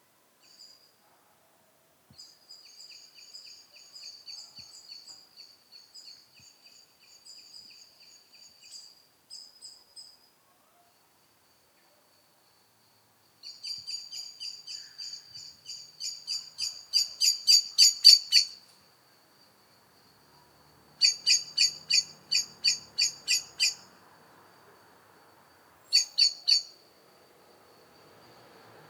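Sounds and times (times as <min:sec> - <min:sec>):
background hiss: 0:00.0 - 0:28.8
Eurasian blackbird chinking calls: 0:13.9 - 0:18.6, 0:21.0 - 0:23.8, 0:25.9 - 0:26.7.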